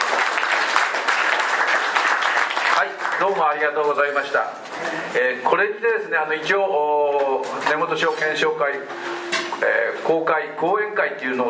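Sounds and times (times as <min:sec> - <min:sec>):
audience applause for a lecturer at a public lecture: 0:00.0 - 0:03.6
speech: 0:02.8 - 0:11.4.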